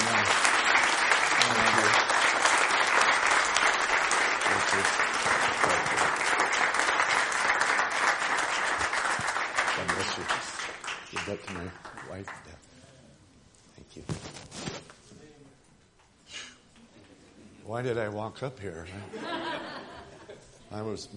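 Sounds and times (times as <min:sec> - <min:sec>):
audience applause: 0:00.0 - 0:12.5
speech: 0:17.8 - 0:19.6, 0:20.7 - 0:21.1
laughter: 0:18.9 - 0:20.7.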